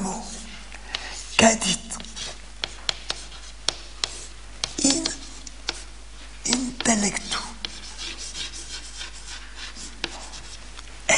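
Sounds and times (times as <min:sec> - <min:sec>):
faint steady hum: 0:00.0 - 0:11.1
speech: 0:01.4 - 0:02.0
pen or chalk strokes as a lecturer writes a Latin phrase: 0:02.0 - 0:05.9, 0:07.6 - 0:10.6.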